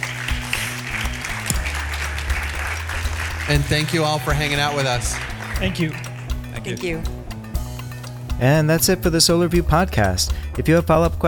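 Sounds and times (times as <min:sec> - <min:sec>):
audience applause: 0:00.0 - 0:06.7
speech: 0:03.5 - 0:06.0, 0:06.6 - 0:07.2, 0:08.4 - 0:11.2.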